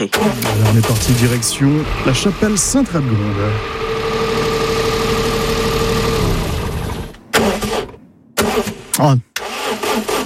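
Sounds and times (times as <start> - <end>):
speech: 0.0 - 4.0, 9.0 - 9.4
car engine idling then stalling: 0.0 - 10.2.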